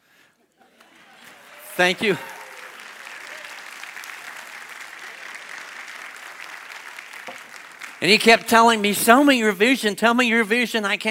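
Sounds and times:
audience applause: 0.7 - 9.3
speech: 1.8 - 2.3, 8.0 - 11.0.

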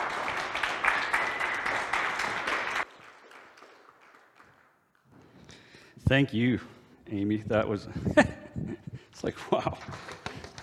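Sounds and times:
crowd applause: 0.0 - 4.7
speech: 6.1 - 10.2.

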